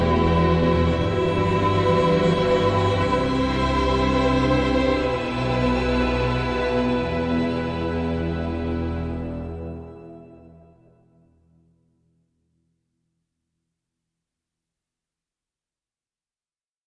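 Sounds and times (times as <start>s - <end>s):
ambient music: 0.0s - 11.6s.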